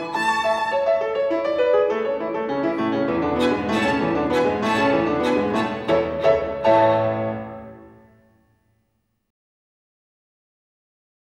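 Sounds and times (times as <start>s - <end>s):
violin sonata in A major, allegro variation: 0.0s - 8.2s.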